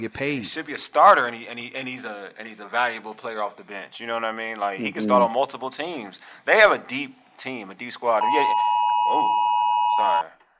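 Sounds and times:
speech: 0.0 - 10.4
phone emergency alert tone: 8.2 - 10.2.

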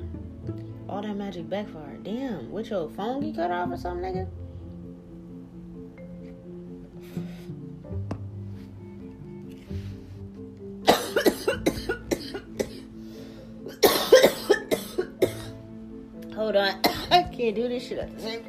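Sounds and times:
speech: 1.0 - 4.4, 17.5 - 18.4
harsh hacking coughing: 10.8 - 12.9, 13.7 - 15.6, 16.8 - 17.3.

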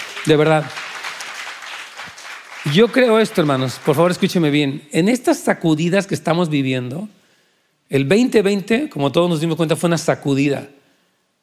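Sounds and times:
audience applause: 0.0 - 4.5
speech: 0.2 - 0.8, 2.6 - 7.2, 7.9 - 10.8.

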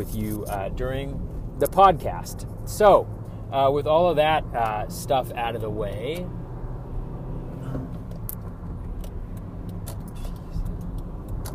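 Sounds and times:
speech: 0.0 - 6.4
car driving on a freeway: 0.0 - 11.5.

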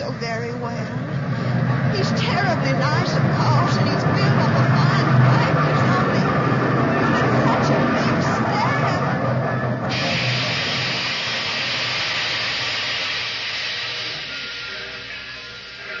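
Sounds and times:
train pulling into a station: 0.0 - 15.9
steam hissing: 9.9 - 15.9.

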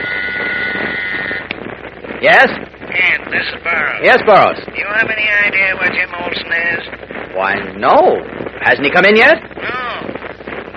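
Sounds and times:
interoffice phone buzzing: 0.0 - 1.6
speech: 2.2 - 9.8.

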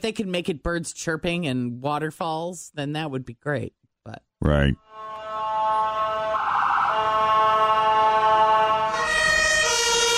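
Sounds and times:
speech: 0.0 - 5.2
European two-tone emergency vehicle siren: 4.8 - 10.1.

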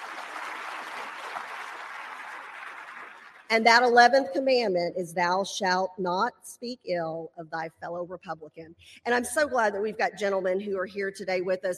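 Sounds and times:
audience applause: 0.0 - 3.5
speech: 3.5 - 11.7.

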